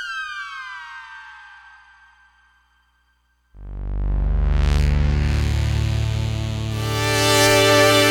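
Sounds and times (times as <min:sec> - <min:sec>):
CS80 synthesizer sound: 0:03.6 - 0:08.0.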